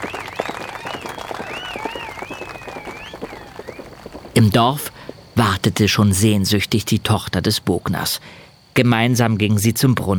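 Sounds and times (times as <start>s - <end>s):
shrill whistles: 0.0s - 4.3s
guards applauding: 0.0s - 4.6s
speech: 4.4s - 10.1s.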